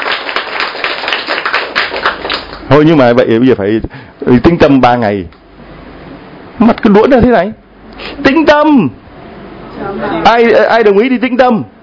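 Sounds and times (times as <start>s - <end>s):
group clapping and applause: 0.0s - 2.9s
speech: 2.7s - 5.4s, 6.6s - 9.0s, 9.8s - 11.8s.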